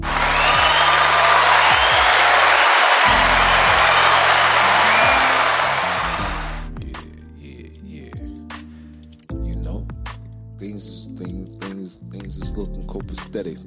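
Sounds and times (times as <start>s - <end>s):
round of applause: 0.0s - 6.7s.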